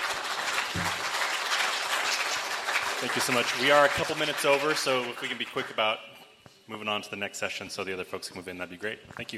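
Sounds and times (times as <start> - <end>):
audience applause closing a conference session: 0.0 - 5.3
speech: 3.0 - 9.3.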